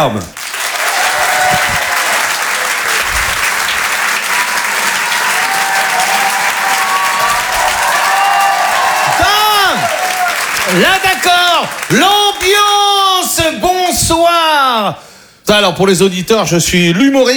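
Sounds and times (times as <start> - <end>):
speech: 0.0 - 0.5, 10.7 - 17.3
comedy club audience applauding and cheering: 0.0 - 13.1.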